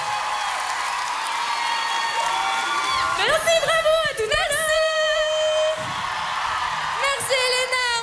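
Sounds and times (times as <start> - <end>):
crowd applause and cheers at a live singing performance: 0.0 - 8.0.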